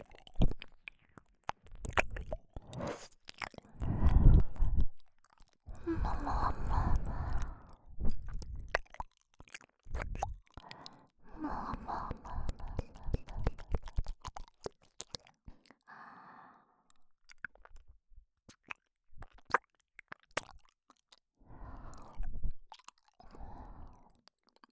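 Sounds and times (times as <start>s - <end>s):
ear licking in the right ear: 0.0s - 9.0s, 9.9s - 15.7s.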